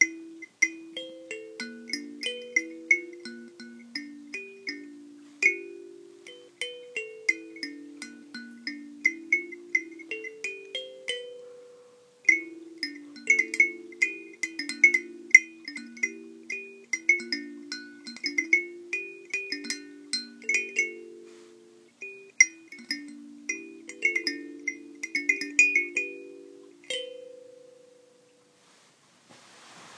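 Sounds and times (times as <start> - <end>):
instrumental tune plucked on a thumb piano: 0.0 - 28.6.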